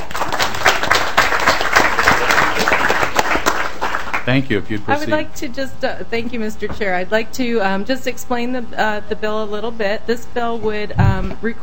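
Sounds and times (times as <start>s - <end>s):
room full of people applauding: 0.0s - 4.4s
speech: 4.3s - 11.6s.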